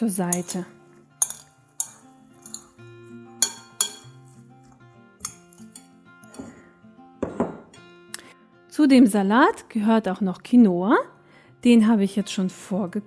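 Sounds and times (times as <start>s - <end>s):
speech: 0.0s - 0.8s, 8.8s - 13.0s
utensil clinking in a bowl while mixing ingredients: 0.3s - 6.6s.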